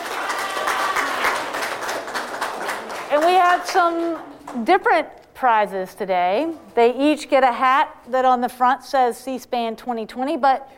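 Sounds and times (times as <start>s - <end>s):
audience applause: 0.0s - 4.3s
speech: 3.2s - 10.7s.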